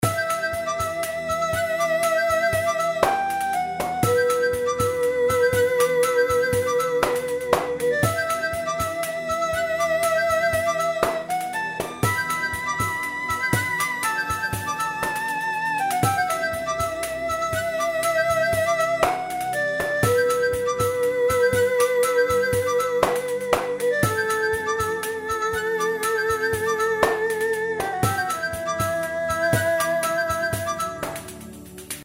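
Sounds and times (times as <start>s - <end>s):
background music: 0.0s - 32.0s.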